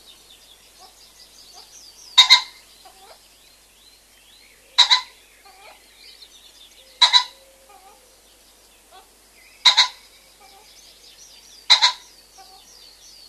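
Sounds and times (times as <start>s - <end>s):
common pheasant crowing: 0.7s - 3.2s, 4.6s - 5.9s, 6.8s - 11.0s, 11.6s - 12.8s.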